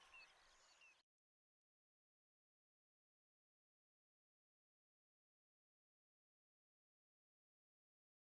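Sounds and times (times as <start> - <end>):
Clamorous Reed-Warbler singing: 0.0 - 1.0.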